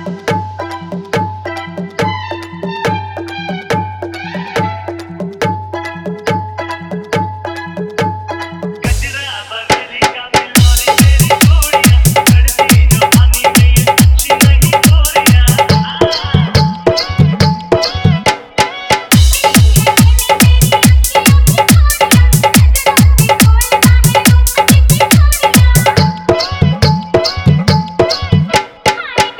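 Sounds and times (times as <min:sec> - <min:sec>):
hard dholak drumming: 0:00.0 - 0:29.3
bass-heavy dance mix: 0:08.8 - 0:10.0, 0:10.6 - 0:18.2, 0:19.1 - 0:28.5.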